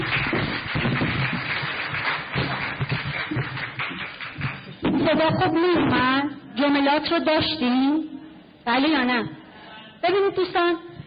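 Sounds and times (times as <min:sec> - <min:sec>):
audience clapping: 0:00.0 - 0:04.8
speech: 0:05.1 - 0:08.1, 0:08.7 - 0:09.4, 0:10.0 - 0:10.9.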